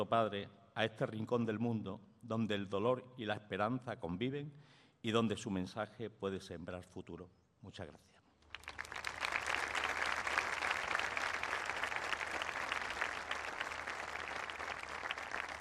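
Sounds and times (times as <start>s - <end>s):
speech: 0.0s - 8.2s
audience applause: 8.5s - 15.6s.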